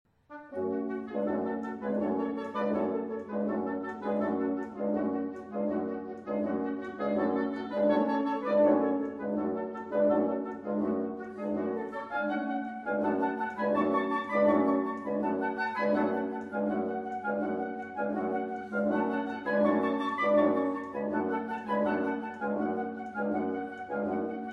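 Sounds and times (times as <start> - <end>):
reed flute organ dance music: 0.4 - 24.5.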